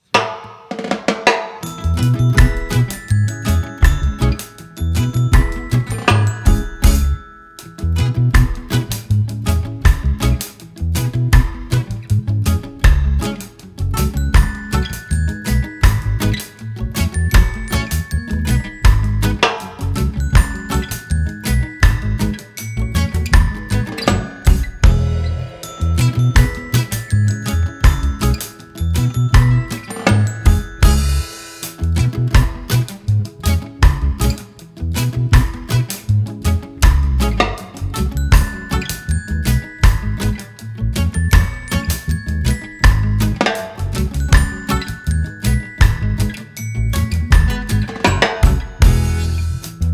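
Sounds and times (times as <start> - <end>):
instrumental song: 0.2 - 49.9.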